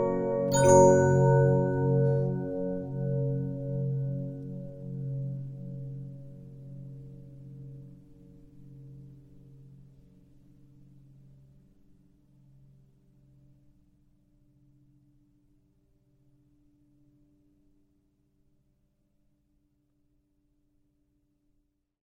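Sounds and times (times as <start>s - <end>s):
Regina 15-inch disc music box: 0.0s - 4.5s.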